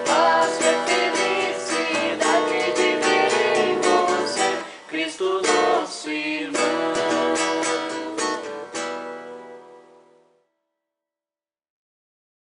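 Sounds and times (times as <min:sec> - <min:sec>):
vocals: 0:00.0 - 0:09.0.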